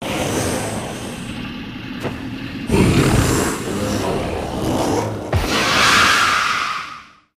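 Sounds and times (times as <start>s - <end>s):
monster sounds: 0.0s - 1.4s, 2.6s - 7.3s.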